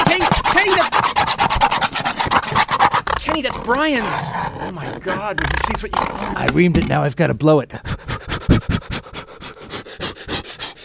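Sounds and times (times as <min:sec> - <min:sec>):
scratching with scissors: 0:00.0 - 0:07.0, 0:07.8 - 0:10.8
speech: 0:03.7 - 0:07.9.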